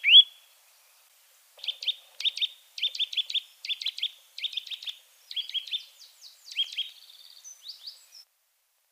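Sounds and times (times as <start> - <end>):
Eurasian nuthatch calling: 0.0 - 0.5, 1.6 - 8.2.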